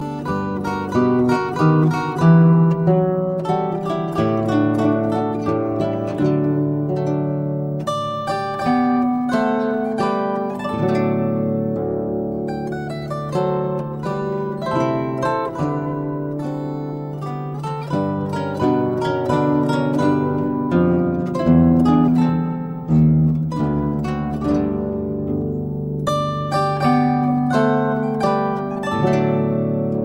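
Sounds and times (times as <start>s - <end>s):
zither playing a minuet: 0.0s - 30.0s.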